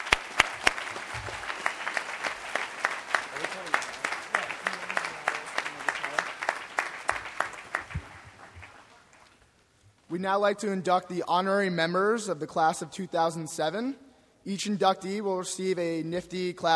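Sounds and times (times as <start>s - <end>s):
audience clapping: 0.0s - 9.5s
speech: 10.2s - 16.7s.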